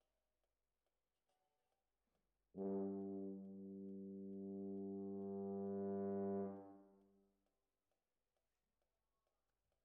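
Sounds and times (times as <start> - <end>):
brass instruments: 2.6 - 7.2.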